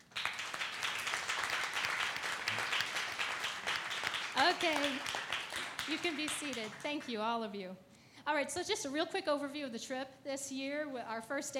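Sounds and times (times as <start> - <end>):
audience applause: 0.0 - 7.1
speech: 4.5 - 5.2, 5.8 - 11.5.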